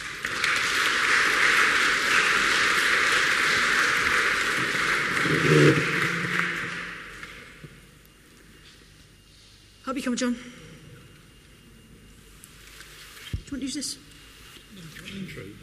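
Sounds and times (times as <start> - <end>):
applause: 0.0 - 7.6
speech: 5.3 - 5.9, 10.1 - 10.5, 13.7 - 14.1.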